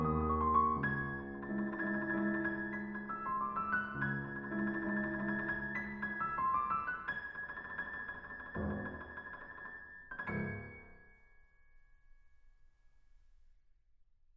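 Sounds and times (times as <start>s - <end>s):
piano prelude in a minor key: 0.0s - 10.8s.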